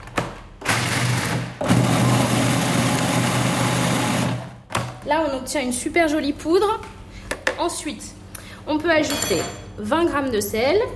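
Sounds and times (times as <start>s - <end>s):
blender grinding peanuts into powder: 0.6s - 4.6s
speech: 5.2s - 7.0s, 7.6s - 10.9s.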